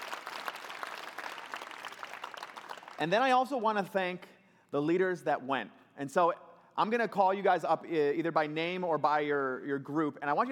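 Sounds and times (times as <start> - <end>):
audience applause: 0.0 - 3.0
speech: 3.0 - 10.5.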